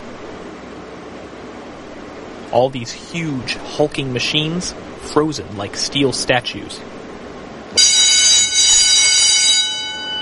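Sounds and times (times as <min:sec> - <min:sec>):
speech: 0:02.5 - 0:07.0
loud factory doorbell ringing: 0:07.8 - 0:10.2.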